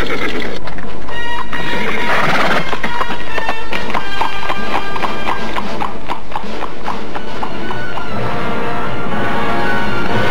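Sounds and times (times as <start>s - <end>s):
horses whinnying: 0.0s - 8.1s
horses galloping with riders: 0.0s - 10.2s.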